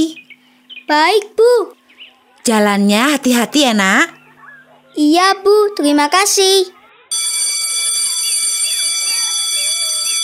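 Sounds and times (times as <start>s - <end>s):
speech: 0.9s - 1.8s, 2.4s - 4.2s, 5.0s - 6.8s
electric school bell ringing: 7.1s - 10.2s.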